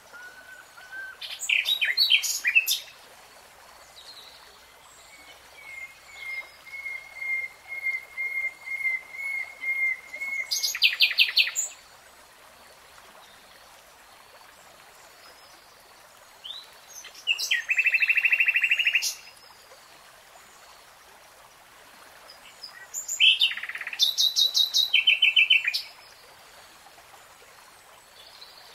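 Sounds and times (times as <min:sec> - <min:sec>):
nightingale song: 0:00.0 - 0:02.9, 0:04.0 - 0:11.8, 0:16.4 - 0:19.4, 0:22.3 - 0:26.2.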